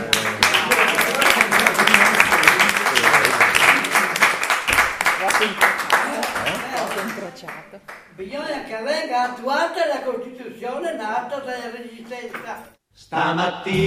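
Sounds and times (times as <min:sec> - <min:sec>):
audience applause: 0:00.0 - 0:08.1
speech: 0:09.1 - 0:13.8.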